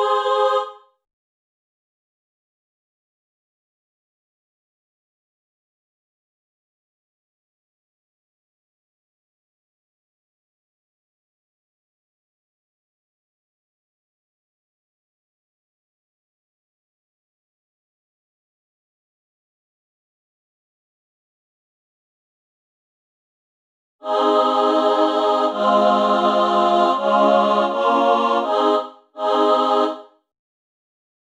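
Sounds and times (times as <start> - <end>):
female chamber choir singing: 0.0 - 0.9, 24.0 - 30.2.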